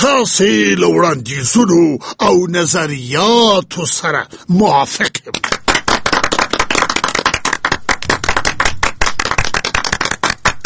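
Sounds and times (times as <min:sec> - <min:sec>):
speech: 0:00.2 - 0:05.6
several people clapping hands: 0:05.3 - 0:10.6.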